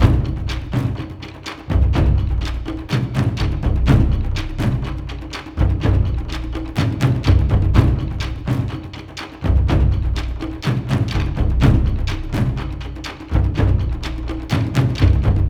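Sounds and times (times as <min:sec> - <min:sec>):
drums: 0:00.0 - 0:15.4.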